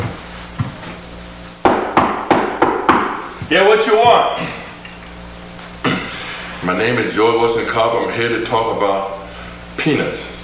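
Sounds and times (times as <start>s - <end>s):
knocking on a door: 1.6s - 4.3s
speech: 3.5s - 4.6s, 6.7s - 9.2s, 9.8s - 10.3s.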